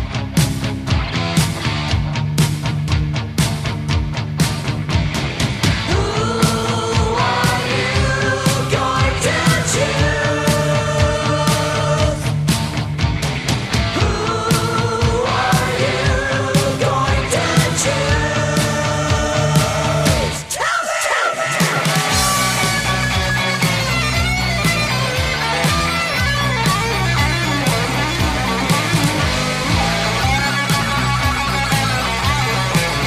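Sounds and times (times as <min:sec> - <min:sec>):
heavy metal music: 0:00.0 - 0:33.0.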